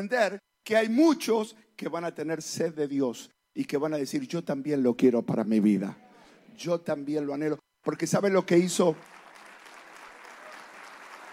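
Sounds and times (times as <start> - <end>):
speech: 0.0 - 6.0, 6.6 - 9.1
audience applause: 9.0 - 11.3.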